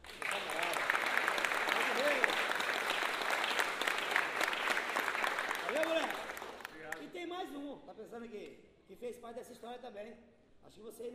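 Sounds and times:
crowd applause for a samba group: 0.0s - 7.0s
speech: 9.2s - 11.1s.

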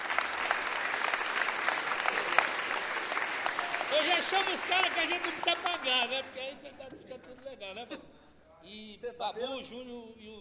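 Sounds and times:
crowd applauding: 0.0s - 6.4s
speech: 4.2s - 10.3s.

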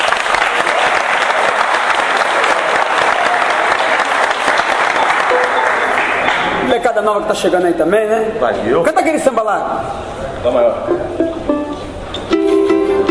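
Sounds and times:
audience applause: 0.0s - 6.7s
speech: 6.9s - 11.6s.

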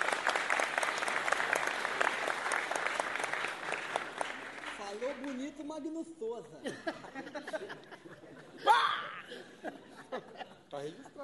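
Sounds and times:
round of applause: 0.0s - 5.5s
speech: 5.5s - 9.6s
laughter: 6.6s - 11.2s.

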